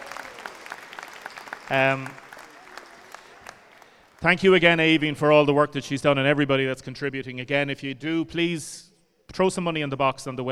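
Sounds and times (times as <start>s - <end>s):
applause: 0.0s - 4.8s
speech: 1.7s - 2.2s, 4.2s - 10.5s.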